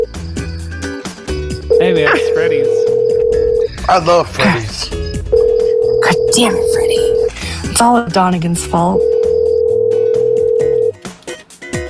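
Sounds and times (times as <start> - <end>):
telephone ringing tone on an outgoing call to a restaurant: 1.7 - 3.7, 5.3 - 7.3, 9.0 - 11.0
speech: 1.8 - 2.9, 3.9 - 5.0, 6.4 - 7.1, 7.8 - 9.1.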